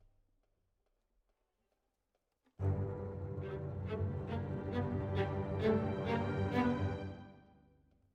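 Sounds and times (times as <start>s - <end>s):
violas: 2.6s - 7.4s.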